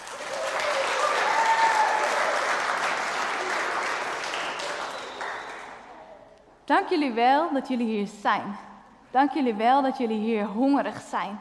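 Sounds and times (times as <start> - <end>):
audience applause: 0.0 - 6.0
speech: 6.7 - 11.3.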